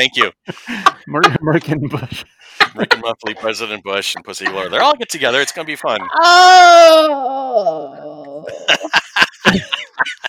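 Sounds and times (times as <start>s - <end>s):
laughter: 0.0s - 7.1s, 8.0s - 10.2s
speech: 0.0s - 10.2s
choppy vocal bursts: 2.7s - 8.5s
agonized scream sound effect: 6.0s - 8.4s.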